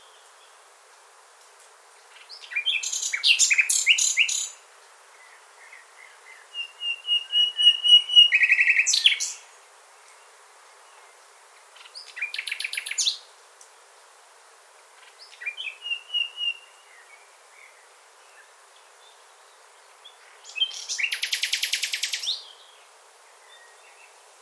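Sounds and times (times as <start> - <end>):
bird calling with thin whistle and sharp downslurred chirps: 2.4 - 4.6, 6.3 - 9.4, 15.4 - 16.7, 20.5 - 22.6.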